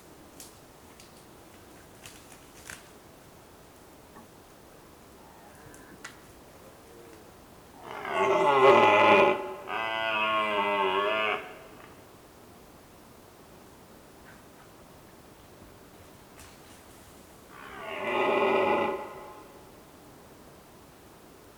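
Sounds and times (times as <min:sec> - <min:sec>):
quiet rustling: 0:00.0 - 0:07.4, 0:14.2 - 0:17.5
red deer roaring: 0:07.8 - 0:11.9, 0:17.5 - 0:19.6.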